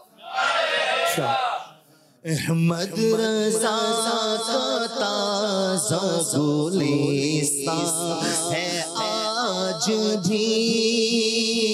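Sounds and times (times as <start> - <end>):
crowd chanting a devotional slogan in unison at an Urs-e-Raza religious gathering: 0.0 - 1.8
speech: 1.2 - 1.5, 2.2 - 11.7.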